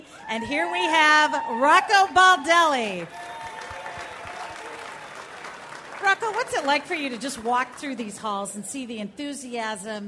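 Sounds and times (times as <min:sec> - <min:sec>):
speech: 0:00.3 - 0:03.2, 0:06.1 - 0:10.0
large crowd applauding at fan convention: 0:00.9 - 0:08.4.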